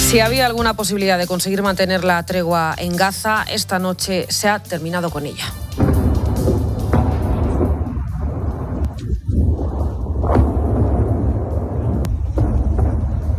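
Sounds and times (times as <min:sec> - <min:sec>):
speech: 0:00.1 - 0:05.9
bomb explosion in the Gaza Strip: 0:05.7 - 0:13.3.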